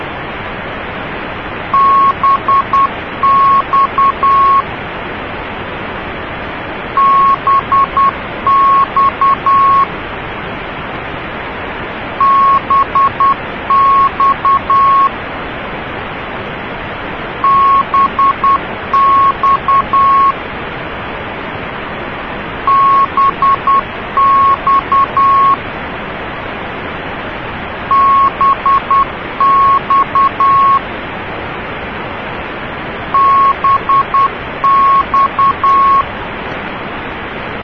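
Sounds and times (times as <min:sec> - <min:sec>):
CW Morse code beeps: 0:01.7 - 0:04.6, 0:07.0 - 0:09.9, 0:12.2 - 0:15.1, 0:17.4 - 0:20.4, 0:22.7 - 0:25.6, 0:27.9 - 0:30.8, 0:33.2 - 0:36.1.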